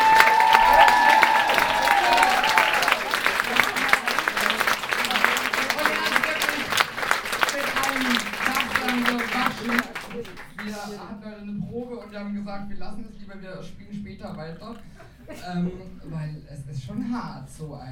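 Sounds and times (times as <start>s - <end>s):
cheering: 0.0s - 9.9s
crowd applauding: 0.0s - 10.9s
speech: 12.6s - 17.9s.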